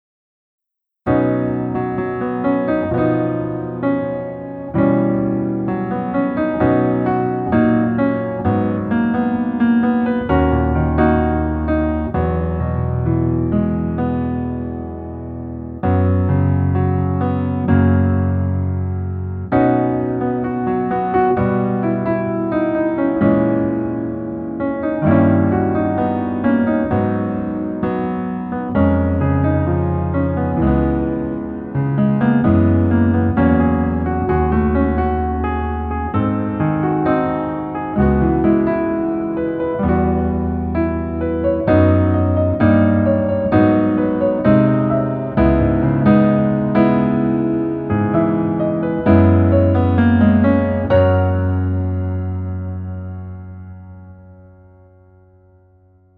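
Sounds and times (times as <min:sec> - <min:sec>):
piano melody instrumental: 0:01.0 - 0:56.1.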